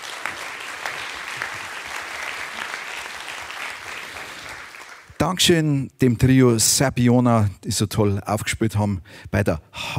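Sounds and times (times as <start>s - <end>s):
audience applause: 0.0s - 5.2s
speech: 5.2s - 9.9s.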